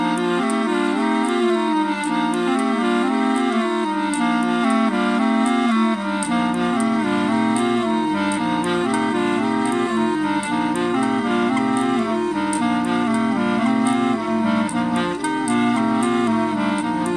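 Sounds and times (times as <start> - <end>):
clarinet canon: 0.0 - 17.1.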